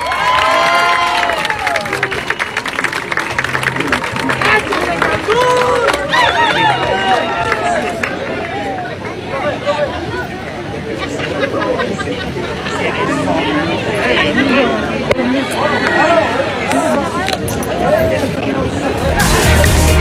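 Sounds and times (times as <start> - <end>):
crowd applauding: 0.0 - 10.4
crowd cheering and excited shouts: 0.0 - 19.9
laughter: 3.7 - 17.0.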